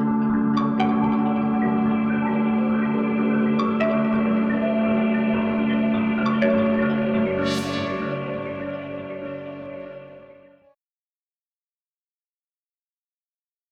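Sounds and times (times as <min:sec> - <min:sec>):
electro music: 0:00.0 - 0:10.7.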